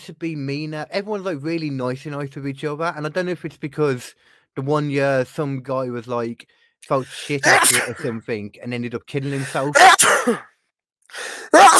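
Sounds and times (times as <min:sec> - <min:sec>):
speech: 0:00.0 - 0:10.5, 0:11.1 - 0:11.7
sneeze: 0:07.4 - 0:08.2, 0:09.6 - 0:10.5, 0:11.6 - 0:11.7.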